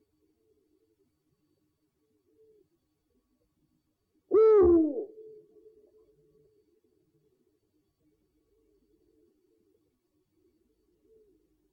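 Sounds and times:
owl giving a two-part hoot: 4.3 - 5.4.

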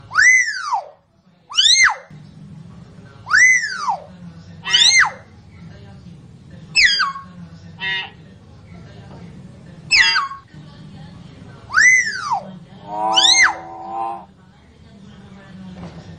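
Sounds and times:
common hill myna whistling song: 0.1 - 2.1, 3.3 - 4.1, 6.8 - 8.1, 9.9 - 10.5, 11.7 - 14.3.

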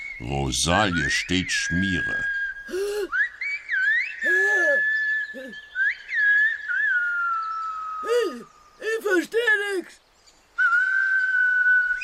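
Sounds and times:
whistled language between bandits: 0.0 - 9.0, 10.5 - 12.0
speech: 0.2 - 2.4
breathy hooting bursts: 2.7 - 3.2, 4.2 - 5.6.

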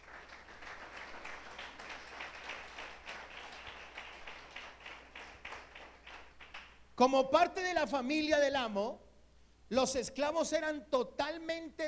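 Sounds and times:
church congregation applauding during a sermon: 0.0 - 6.9
speech: 7.0 - 9.0, 9.7 - 11.8.

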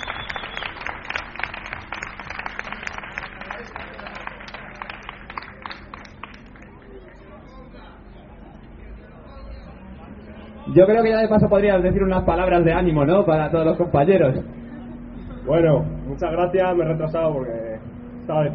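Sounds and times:
audience applause: 0.0 - 7.3
crowd murmur: 0.0 - 18.5
speech: 10.8 - 14.6, 15.5 - 17.6, 18.3 - 18.5.

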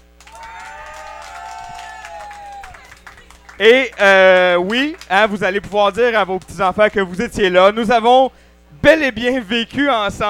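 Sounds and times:
audience applause: 0.2 - 6.5
speech: 3.6 - 10.2.

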